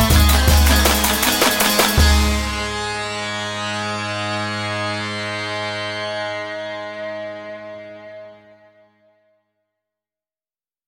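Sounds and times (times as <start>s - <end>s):
eastern-style pulses: 0.0s - 5.8s.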